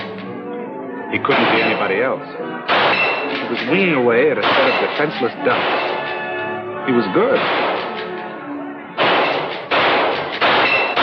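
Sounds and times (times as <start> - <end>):
speech: 1.1 - 5.9, 6.9 - 7.7
gunshots fired at ducks: 1.3 - 2.0, 2.7 - 3.8, 4.4 - 6.2, 7.3 - 8.2, 9.0 - 11.0.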